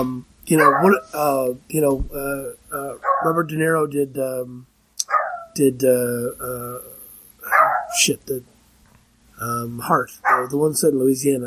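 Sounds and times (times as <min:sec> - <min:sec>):
speech: 0:00.0 - 0:04.7, 0:05.6 - 0:06.9, 0:07.5 - 0:08.5, 0:09.4 - 0:11.4
dog barking: 0:00.6 - 0:01.2, 0:03.0 - 0:03.4, 0:05.0 - 0:05.6, 0:07.5 - 0:08.0, 0:10.2 - 0:10.6.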